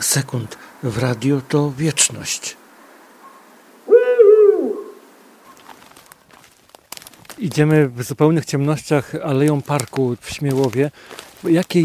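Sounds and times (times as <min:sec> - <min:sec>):
speech: 0:00.1 - 0:02.6, 0:07.4 - 0:11.8
Eurasian eagle-owl giving a low wavering hoot: 0:03.2 - 0:05.6
faint rustling: 0:05.2 - 0:11.8.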